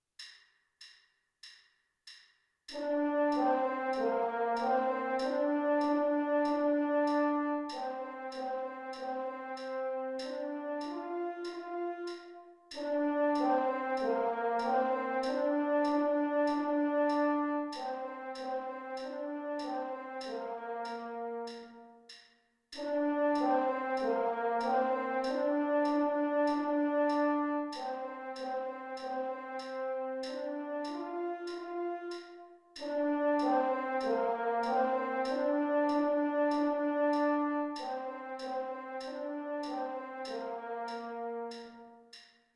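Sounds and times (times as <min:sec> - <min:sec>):
French horn: 0:02.7 - 0:22.1, 0:22.8 - 0:42.2.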